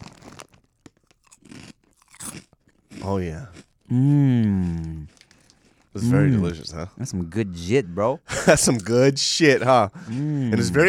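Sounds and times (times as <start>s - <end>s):
Korean truffle crackers crunching: 0.0s - 3.9s, 4.6s - 6.0s
speech: 3.0s - 5.1s, 6.0s - 10.8s.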